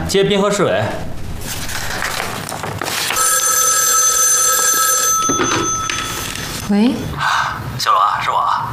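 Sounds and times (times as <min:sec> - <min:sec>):
speech: 0:00.1 - 0:01.6, 0:06.7 - 0:08.6
telephone ringing: 0:02.9 - 0:06.9.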